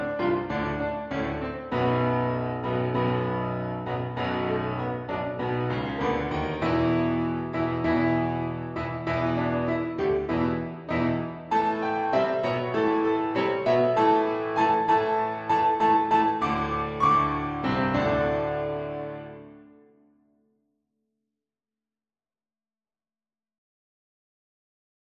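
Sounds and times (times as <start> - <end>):
dominant seventh gallop piano backing track: 0.0 - 20.0.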